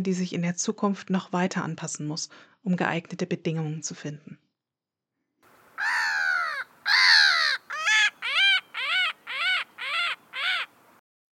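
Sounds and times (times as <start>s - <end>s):
speech: 0.0s - 4.4s
Black-headed Gull harsh calls: 5.8s - 10.8s.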